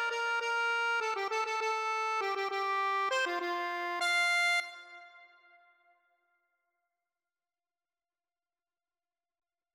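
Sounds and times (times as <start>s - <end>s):
accordion: 0.0s - 5.5s.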